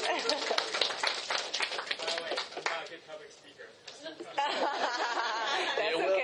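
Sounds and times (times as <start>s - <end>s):
laughter: 0.0s - 1.0s, 4.0s - 6.1s
audience clapping: 0.0s - 3.0s.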